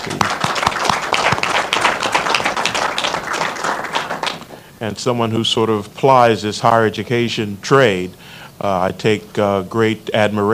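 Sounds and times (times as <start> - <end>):
audience applause: 0.0 - 4.6
speech: 4.8 - 10.5.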